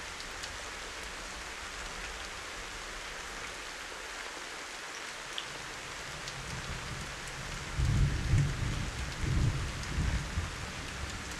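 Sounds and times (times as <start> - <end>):
thunderstorm: 6.4 - 11.3.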